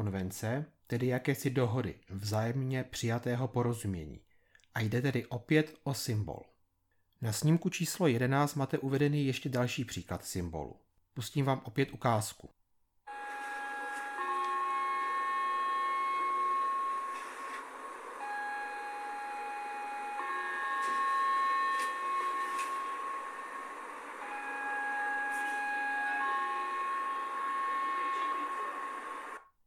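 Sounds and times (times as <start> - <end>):
speech: 0.0 - 6.5, 7.2 - 12.6
old-style two-tone fire engine siren: 13.1 - 29.5.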